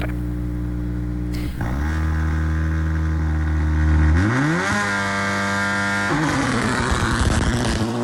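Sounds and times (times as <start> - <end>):
rally car engines revving at the start: 0.0 - 8.0.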